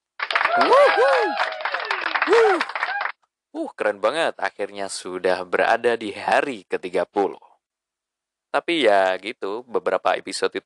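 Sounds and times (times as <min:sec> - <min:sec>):
crowd applause: 0:00.2 - 0:03.1
whooping cheering voices: 0:00.3 - 0:03.1
speech: 0:00.6 - 0:01.6, 0:02.3 - 0:02.8, 0:03.6 - 0:07.5, 0:08.5 - 0:10.6.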